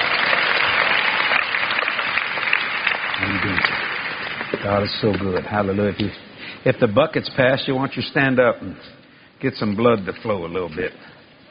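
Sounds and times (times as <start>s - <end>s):
audience applauding: 0.0s - 5.5s
speech: 4.7s - 11.2s.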